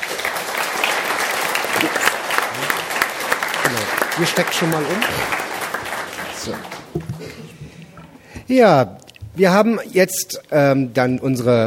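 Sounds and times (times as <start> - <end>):
audience applause: 0.0 - 8.3
speech: 1.8 - 2.1, 3.7 - 5.5, 6.4 - 7.2, 8.5 - 11.6.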